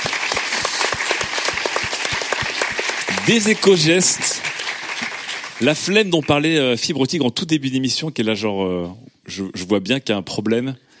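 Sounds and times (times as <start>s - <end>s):
audience applause: 0.0s - 6.8s
speech: 3.2s - 4.5s, 5.6s - 10.9s.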